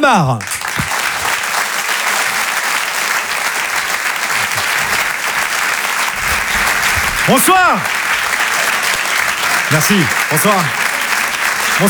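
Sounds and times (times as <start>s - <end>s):
speech: 0.0s - 0.6s, 7.2s - 8.0s, 9.7s - 10.8s
theater audience applause welcoming a comedian at a French comedy night: 0.0s - 11.8s
laughter: 0.4s - 11.8s.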